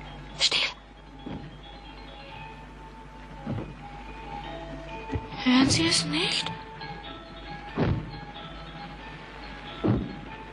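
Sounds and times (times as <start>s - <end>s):
faint hum: 0.0s - 10.5s
heavy booming footsteps: 1.2s - 1.8s, 3.4s - 4.0s, 5.0s - 6.0s, 7.5s - 8.6s, 9.7s - 10.5s
speech: 5.4s - 6.7s.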